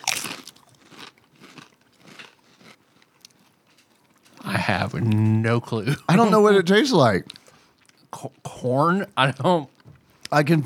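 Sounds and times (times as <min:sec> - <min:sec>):
tortilla chips being bitten and chewed: 0:00.0 - 0:05.3
speech: 0:04.7 - 0:07.3, 0:08.2 - 0:09.7, 0:10.3 - 0:10.6.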